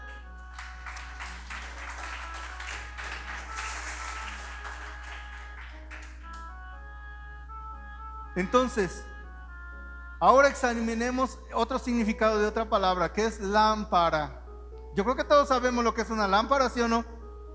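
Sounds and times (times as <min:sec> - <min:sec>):
sustained musical tones: 0:00.1 - 0:11.1
audience applauding: 0:00.4 - 0:06.5
speech: 0:08.4 - 0:09.1, 0:10.2 - 0:17.1.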